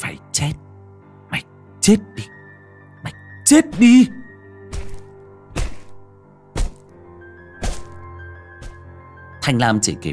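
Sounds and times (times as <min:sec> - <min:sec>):
speech: 0:00.4 - 0:00.7, 0:01.3 - 0:02.4, 0:03.5 - 0:04.2, 0:09.5 - 0:10.1
stone striking a face: 0:04.7 - 0:06.9, 0:07.6 - 0:08.8.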